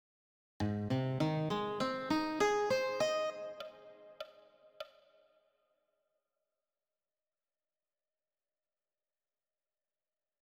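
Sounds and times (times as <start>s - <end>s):
arpeggios: 0.6s - 4.3s.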